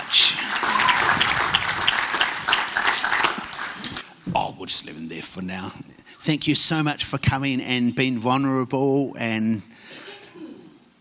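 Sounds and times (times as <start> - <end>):
audience applause: 0.0 - 4.0
speech: 5.3 - 9.7.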